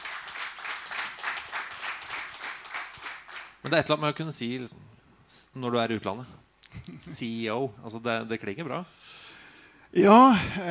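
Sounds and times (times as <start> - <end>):
audience applause: 0.0 - 3.6
speech: 3.6 - 9.2, 9.9 - 10.6.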